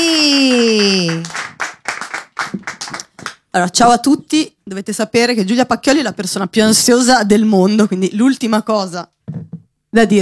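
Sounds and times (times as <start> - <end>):
audience applause: 0.0 - 3.4
speech: 3.6 - 10.2.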